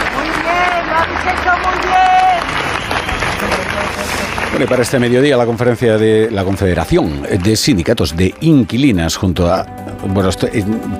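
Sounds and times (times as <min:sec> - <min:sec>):
scattered voices and murmurs: 0:00.0 - 0:07.9
crowd applauding outdoors at a memorial march: 0:00.0 - 0:08.8
speech: 0:04.6 - 0:10.9.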